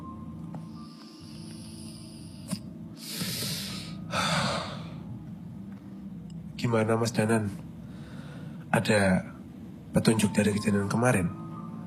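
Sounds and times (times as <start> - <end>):
long inhale and heavy exhale of cigarette smoke: 0.7 - 5.0, 7.8 - 8.6
speech: 6.6 - 7.7, 8.8 - 9.3, 10.0 - 11.4.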